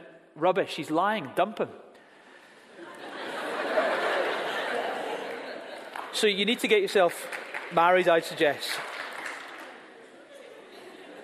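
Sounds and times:
speech: 0.4s - 1.9s, 6.2s - 8.9s
laughter: 2.7s - 6.0s, 9.9s - 11.2s
audience clapping: 4.8s - 10.1s.

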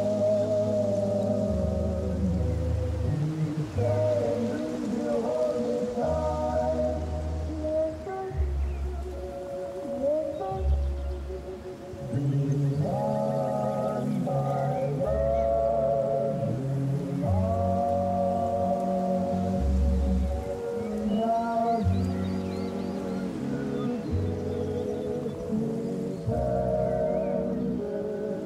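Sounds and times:
music playing inside a cabin through an open door: 0.0s - 28.4s.

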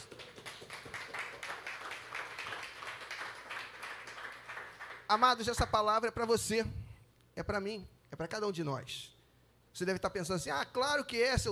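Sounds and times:
crowd of worshippers applauding: 0.0s - 5.3s
speech: 5.1s - 6.8s, 7.4s - 9.1s, 9.8s - 11.4s.

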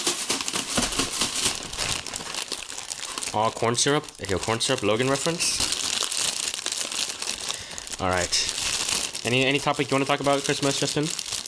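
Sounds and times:
opening a plastic bag of Jet Puff marshmallows: 0.0s - 11.4s
speech: 3.3s - 5.8s, 8.0s - 8.6s, 9.2s - 11.2s.

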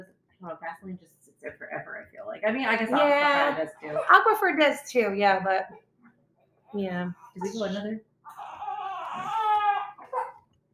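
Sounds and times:
speech: 0.0s - 5.8s, 6.7s - 8.5s
baby fussing and crying: 8.3s - 10.4s.

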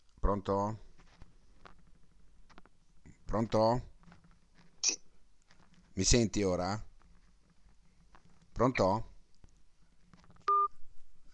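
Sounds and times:
speech: 0.3s - 0.8s, 3.3s - 3.9s, 4.8s - 5.0s, 6.0s - 6.9s, 8.6s - 9.1s
telephone keypad tone: 10.5s - 10.7s.

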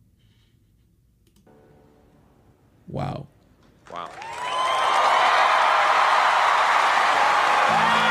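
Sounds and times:
speech: 2.9s - 3.2s
applause, standing ovation: 3.8s - 8.0s.

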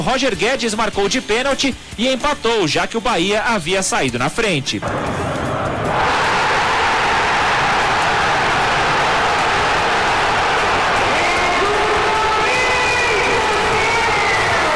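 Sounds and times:
speech: 0.0s - 5.3s
huge stadium crowd roaring and cheering a goal: 4.8s - 14.7s
shouts: 4.8s - 14.7s
whistles: 4.8s - 14.7s.

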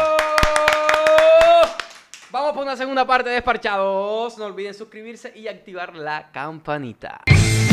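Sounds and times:
people clapping hands: 0.0s - 2.4s
speech: 2.5s - 7.6s.

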